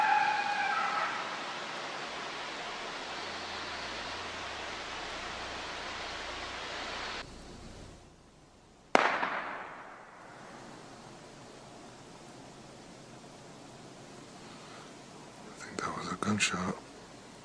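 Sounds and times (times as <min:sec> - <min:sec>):
low hiss: 0:00.0 - 0:17.4
gunshot in the woods: 0:09.0 - 0:10.3.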